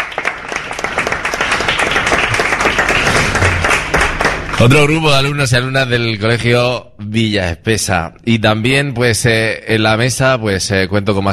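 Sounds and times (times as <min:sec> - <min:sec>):
audience applause: 0:00.0 - 0:05.0
speech: 0:04.6 - 0:11.3.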